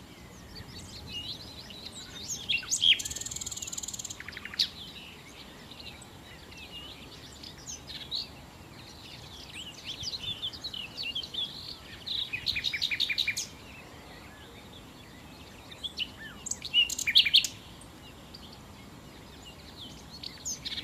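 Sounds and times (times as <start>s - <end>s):
common nightingale song: 0.0s - 20.8s
hiss: 0.0s - 20.8s.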